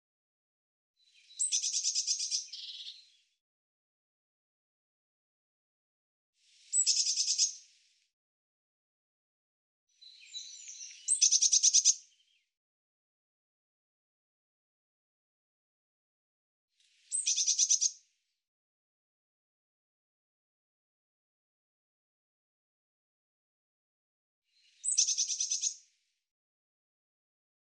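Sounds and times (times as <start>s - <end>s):
bird singing high thin buzzy phrases: 1.1s - 3.2s, 6.7s - 7.6s, 10.0s - 12.4s, 17.1s - 18.0s, 24.6s - 25.8s.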